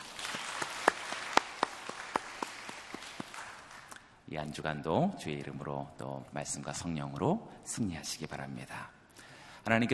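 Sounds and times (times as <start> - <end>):
audience applause: 0.0 - 4.0
speech: 4.3 - 9.0, 9.6 - 9.9.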